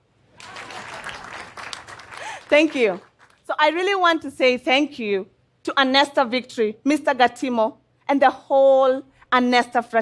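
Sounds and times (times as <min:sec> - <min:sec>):
audience applause: 0:00.4 - 0:03.4
speech: 0:02.5 - 0:09.9.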